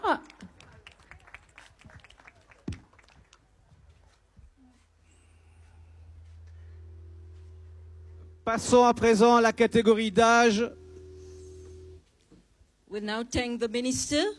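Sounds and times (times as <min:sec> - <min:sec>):
audience applause: 0:00.0 - 0:03.7
speech: 0:08.5 - 0:10.8, 0:13.0 - 0:14.3.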